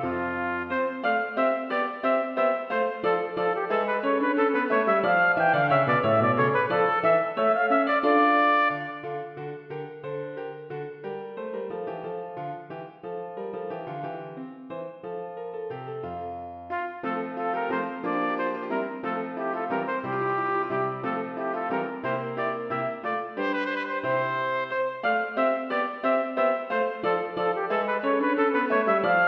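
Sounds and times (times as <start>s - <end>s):
trumpet playing a passepied: 0.0s - 9.4s, 16.7s - 29.2s
piano: 0.0s - 29.2s.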